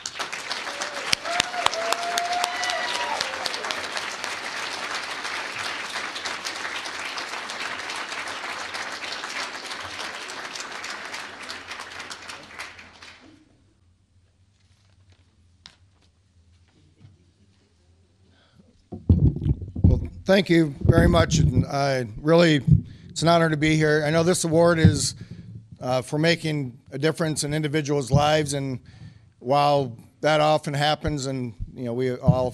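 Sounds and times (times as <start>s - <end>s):
round of applause: 0.0s - 13.5s
speech: 20.3s - 25.2s, 25.8s - 28.9s, 29.5s - 32.5s.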